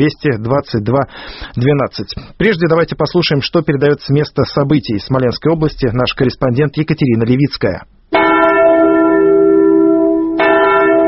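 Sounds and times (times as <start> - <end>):
speech: 0.0 - 8.2
deep church mourning bell tolling: 8.2 - 11.0.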